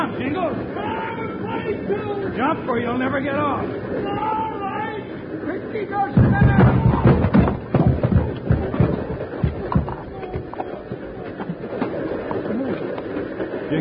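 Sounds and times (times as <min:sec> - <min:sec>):
radio drama sound effect of a train pulling away: 0:00.0 - 0:13.7
speech: 0:01.9 - 0:04.4, 0:05.5 - 0:06.8
sharp clanks: 0:06.1 - 0:13.7.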